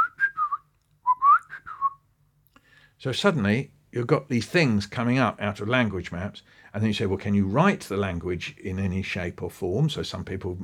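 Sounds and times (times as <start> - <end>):
person whistling in imitation of a little owl call: 0.0 - 2.0
speech: 3.0 - 10.6.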